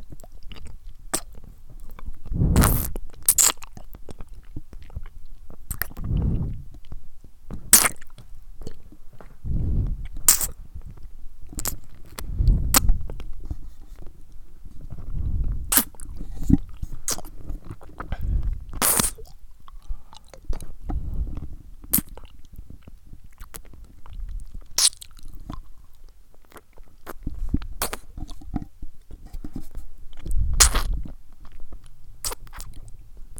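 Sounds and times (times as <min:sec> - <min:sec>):
oral mouth noises: 0:00.6 - 0:03.7, 0:05.7 - 0:06.9, 0:09.4 - 0:14.1, 0:14.8 - 0:22.2, 0:26.5 - 0:31.2.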